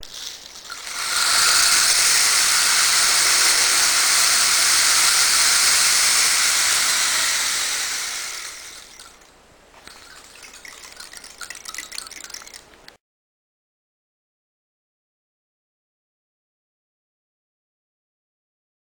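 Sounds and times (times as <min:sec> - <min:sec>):
rain stick: 0:00.0 - 0:13.0.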